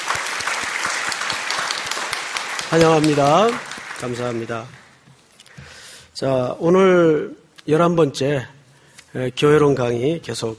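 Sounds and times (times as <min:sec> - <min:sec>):
applause: 0:00.0 - 0:05.1
speech: 0:02.7 - 0:04.8, 0:06.2 - 0:08.6, 0:09.2 - 0:10.5.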